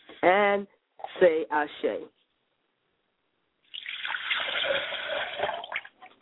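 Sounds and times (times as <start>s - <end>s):
speech: 0.2s - 2.2s
liquid libation pouring: 3.6s - 6.2s.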